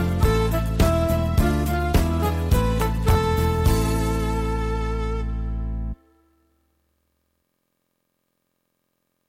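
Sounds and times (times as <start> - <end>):
backing track: 0.0 - 6.2.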